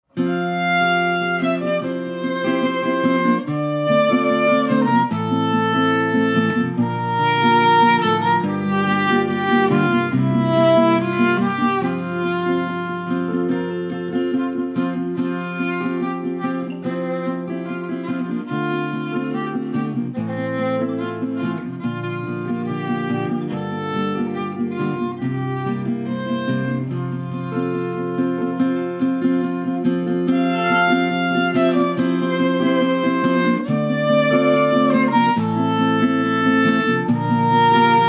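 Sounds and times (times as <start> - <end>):
instrumental music: 0.0 - 38.0.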